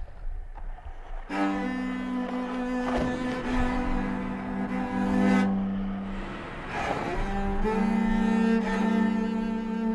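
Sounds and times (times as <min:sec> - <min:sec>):
traffic hum in Long Island City, Queens: 0:00.1 - 0:08.8
layered drone of midi-based instruments: 0:03.4 - 0:09.9.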